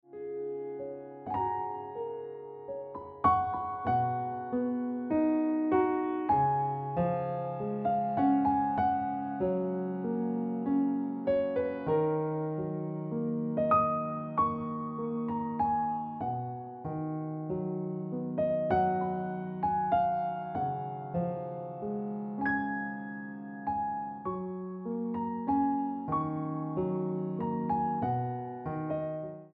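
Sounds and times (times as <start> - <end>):
piano ringtone music: 0.1 - 29.5.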